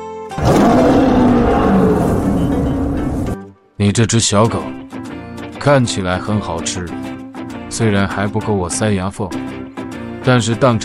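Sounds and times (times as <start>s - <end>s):
tiger roar: 0.4s - 3.4s
speech: 3.8s - 4.9s, 5.6s - 7.1s, 7.7s - 9.6s, 10.3s - 10.8s.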